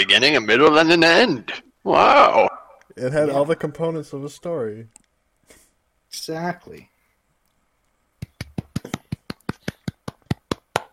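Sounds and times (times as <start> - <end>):
speech: 0.0 - 5.0, 6.1 - 6.9
hand clapping: 8.2 - 10.9.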